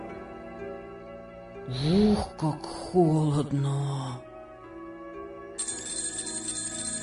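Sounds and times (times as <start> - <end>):
speech: 1.7 - 4.3
alarm clock ringing loudly: 5.6 - 7.0.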